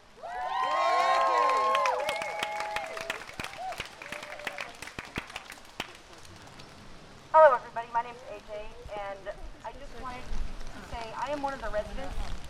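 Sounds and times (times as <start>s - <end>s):
applause: 0.4s - 6.6s
speech: 11.3s - 12.4s.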